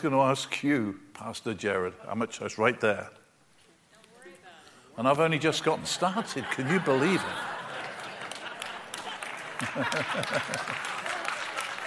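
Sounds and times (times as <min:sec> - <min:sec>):
speech: 0:00.0 - 0:03.2, 0:05.0 - 0:07.5, 0:09.6 - 0:11.0
laughter: 0:05.6 - 0:11.8
audience applause: 0:06.2 - 0:11.8.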